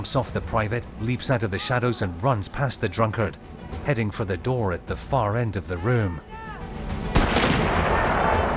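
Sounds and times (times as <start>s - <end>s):
speech: 0.0s - 6.4s
gunshots: 7.2s - 8.4s.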